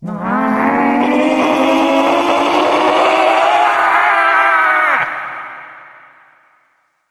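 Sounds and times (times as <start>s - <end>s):
zombies yelling: 0.0s - 6.3s.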